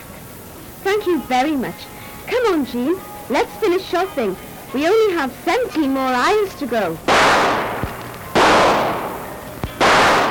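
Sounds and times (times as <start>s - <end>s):
speech: 0.8s - 7.6s
gunshots in a supermarket: 7.1s - 10.2s.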